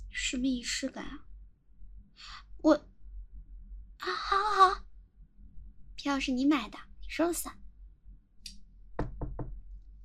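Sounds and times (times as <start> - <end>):
speech: 0.3 - 1.3, 2.2 - 2.9, 6.1 - 7.6
knocking on a door: 9.0 - 9.6.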